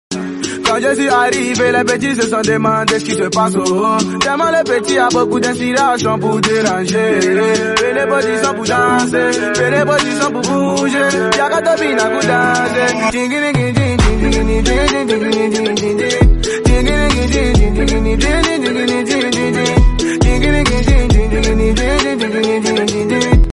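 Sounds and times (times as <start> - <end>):
music beat: 0.1 - 23.5.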